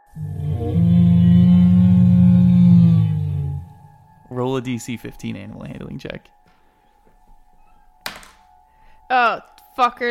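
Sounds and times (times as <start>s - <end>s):
monster roar sound effect: 0.0s - 3.8s
speech: 4.4s - 6.4s, 9.1s - 10.0s.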